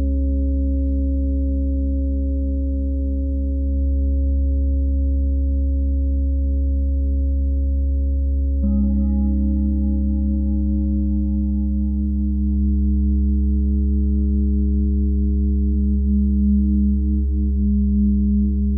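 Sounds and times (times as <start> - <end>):
deep low hum: 0.0 - 18.7
tuning fork tone: 0.0 - 18.7
singing bowls ringing: 8.6 - 18.5.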